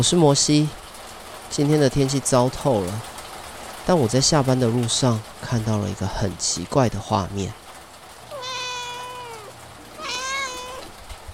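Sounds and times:
speech: 0.0s - 0.9s, 1.5s - 3.1s, 3.9s - 7.6s
faint hum: 1.6s - 11.3s
wet kitten meowing: 8.3s - 11.0s.

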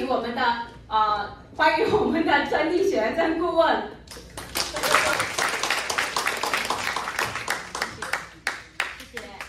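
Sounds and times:
speech: 0.1s - 4.0s
audience applause: 4.4s - 9.4s.

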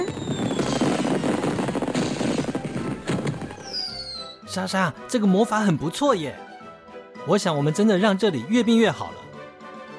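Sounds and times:
fireworks shooting and sizzling: 0.0s - 4.2s
speech: 4.5s - 6.4s, 7.2s - 9.2s.

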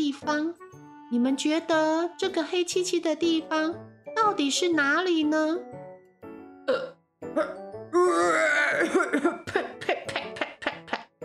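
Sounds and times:
speech: 0.0s - 5.8s, 6.7s - 10.0s
voice imitating owl coughing and retching: 8.7s - 11.0s.

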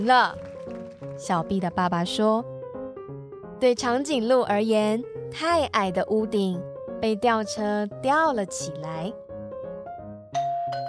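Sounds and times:
speech: 0.0s - 0.5s, 1.2s - 2.5s, 3.6s - 9.2s
electronic doorbell chiming: 10.4s - 10.8s.

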